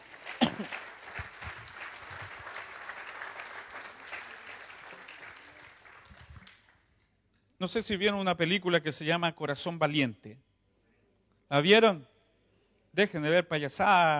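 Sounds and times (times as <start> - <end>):
audience applause: 0.0 - 6.8
speech: 7.6 - 10.5, 11.5 - 12.1, 13.0 - 14.1.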